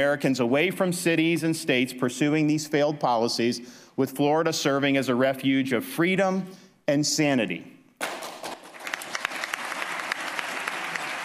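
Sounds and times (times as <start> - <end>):
speech: 0.0 - 7.8
applause: 8.0 - 11.2.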